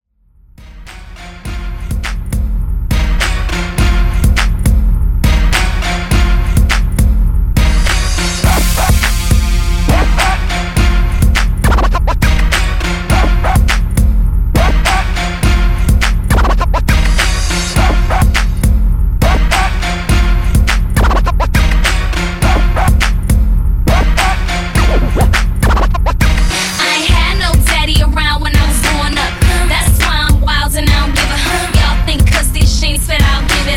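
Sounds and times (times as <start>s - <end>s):
music outro: 0.6s - 33.7s.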